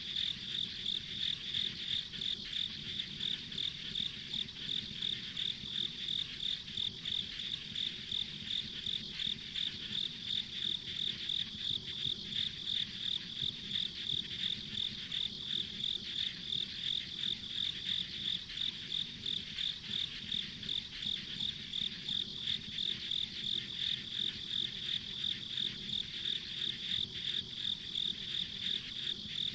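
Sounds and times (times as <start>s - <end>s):
insect chirping in a high pulsed trill: 0.0s - 29.5s.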